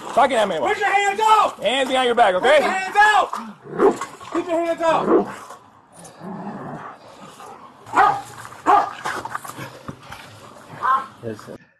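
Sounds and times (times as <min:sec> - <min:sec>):
speech: 0:00.2 - 0:05.4, 0:11.2 - 0:11.7
police dog barking: 0:07.9 - 0:09.0, 0:10.8 - 0:11.1.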